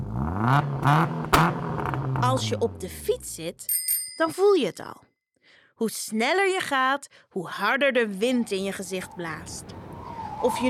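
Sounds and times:
race car revving and speeding off: 0.0 - 2.4
speech: 0.5 - 1.2, 2.3 - 5.1, 5.8 - 9.8, 10.4 - 10.6.

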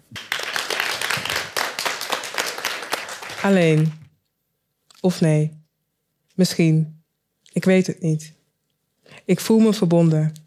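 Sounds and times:
audience applause: 0.2 - 4.0
speech: 3.4 - 4.0, 5.0 - 5.6, 6.4 - 7.0, 7.6 - 8.4, 9.1 - 10.4.

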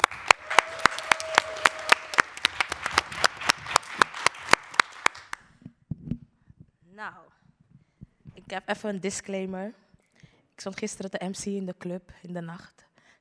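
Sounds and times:
audience applause: 0.0 - 5.4
speech: 7.0 - 7.2, 8.5 - 9.8, 10.6 - 12.8.

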